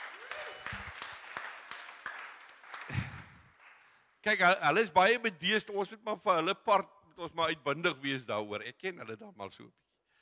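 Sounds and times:
people clapping hands: 0.0s - 4.0s
speech: 4.2s - 9.8s.

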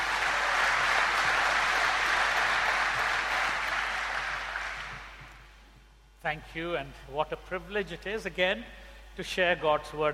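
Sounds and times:
congregation applause welcoming a guest preacher at a morning service: 0.0s - 5.5s
speech: 6.2s - 10.1s.

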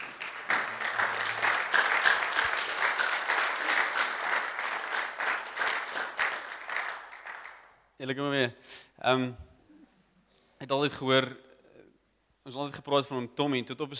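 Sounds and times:
audience applause: 0.0s - 7.8s
speech: 8.0s - 9.5s, 10.6s - 11.4s, 12.5s - 13.9s.

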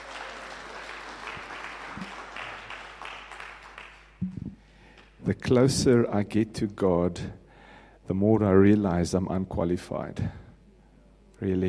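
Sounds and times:
audience applause welcoming a speaker: 0.0s - 4.1s
low thumps: 4.2s - 4.6s
speech: 5.3s - 7.4s, 8.1s - 10.4s, 11.4s - 11.6s.

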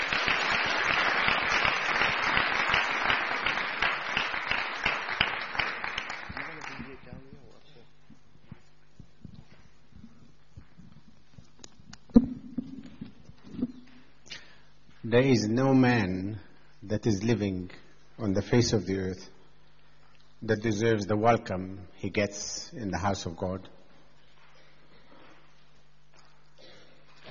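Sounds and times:
church audience applauding to welcome a speaker: 0.0s - 7.1s
speech: 15.1s - 19.3s, 20.4s - 23.8s.

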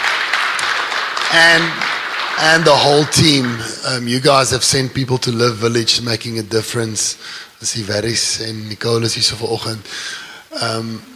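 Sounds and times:
audience clapping: 0.0s - 4.8s
speech: 1.3s - 11.1s.

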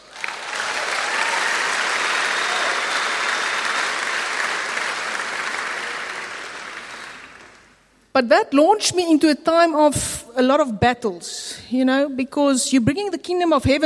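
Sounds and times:
audience applause: 0.0s - 7.8s
speech: 8.2s - 13.8s.

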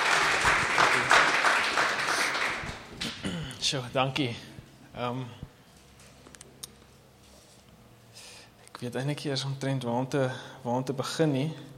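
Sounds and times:
audience clapping hands: 0.0s - 3.3s
speech: 3.6s - 5.4s, 8.8s - 11.7s.

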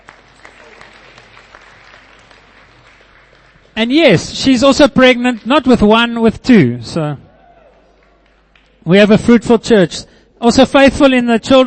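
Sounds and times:
church congregation applauding a couple: 0.0s - 3.9s, 7.6s - 8.9s
speech: 3.8s - 7.2s, 8.8s - 11.6s.

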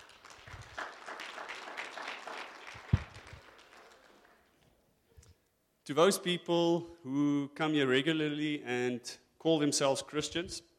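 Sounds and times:
church congregation applause welcoming newcomers: 0.0s - 4.6s
speech: 5.9s - 10.7s.

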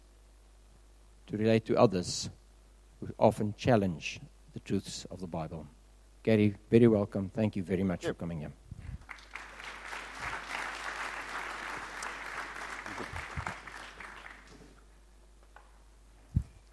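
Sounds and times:
speech: 1.3s - 2.4s, 3.0s - 8.6s
audience clapping: 9.0s - 14.9s.

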